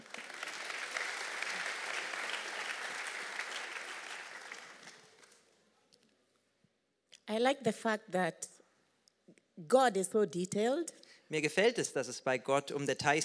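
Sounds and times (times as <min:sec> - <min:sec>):
audience applause: 0:00.0 - 0:05.4
speech: 0:07.3 - 0:08.6, 0:09.6 - 0:13.2.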